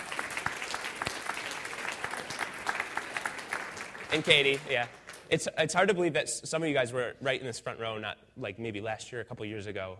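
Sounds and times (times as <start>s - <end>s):
audience applause: 0.0s - 5.4s
speech: 4.1s - 9.9s.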